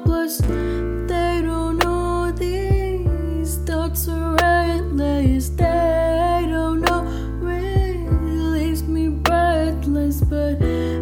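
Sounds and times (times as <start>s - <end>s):
blues music: 0.1s - 10.8s.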